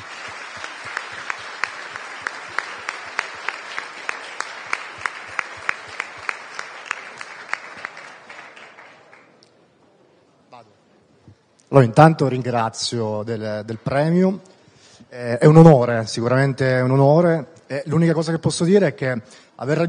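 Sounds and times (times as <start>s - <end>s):
audience applause: 0.0s - 9.3s
speech: 11.8s - 14.5s, 15.1s - 19.8s.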